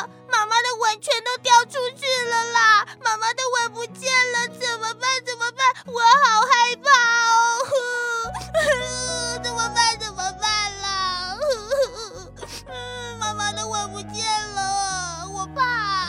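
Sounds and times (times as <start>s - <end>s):
child wailing and sobbing: 0.0s - 16.0s
musical backing: 8.3s - 16.0s.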